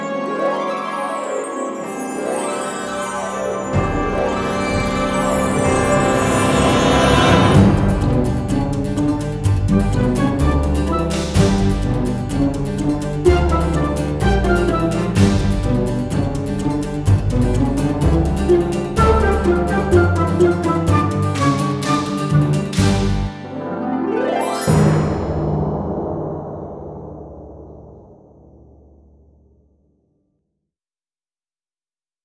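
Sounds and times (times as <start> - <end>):
harp glissando: 0.0 - 16.7, 17.3 - 26.2.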